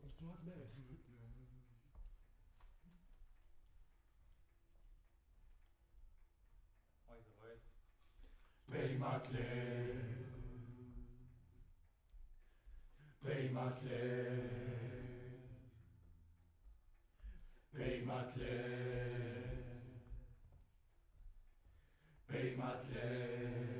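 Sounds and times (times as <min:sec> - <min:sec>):
distant choir: 0:08.3 - 0:23.7.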